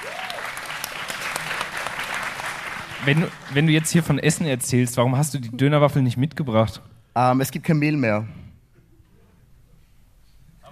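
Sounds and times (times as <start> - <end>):
audience applause: 0.0 - 4.4
speech: 3.0 - 8.5.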